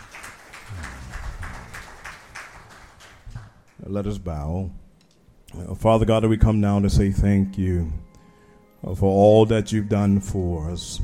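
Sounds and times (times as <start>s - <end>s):
audience hand clapping: 0.0s - 4.0s
speech: 3.8s - 4.8s, 5.5s - 8.1s, 8.8s - 11.0s.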